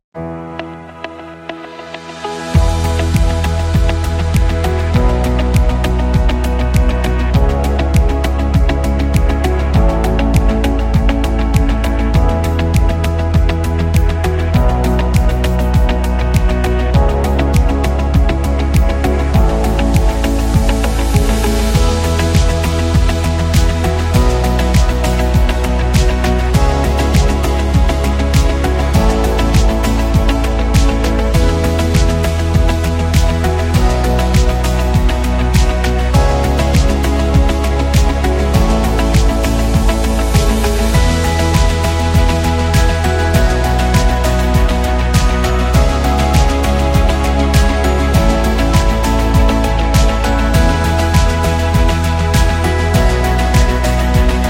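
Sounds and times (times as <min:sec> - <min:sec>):
motivational corporate music: 0:00.2 - 0:54.4.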